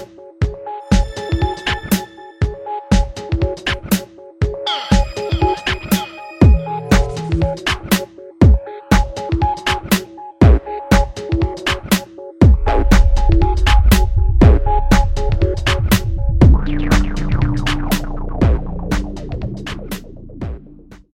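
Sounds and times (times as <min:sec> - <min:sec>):
dreamy song: 0:00.5 - 0:20.9.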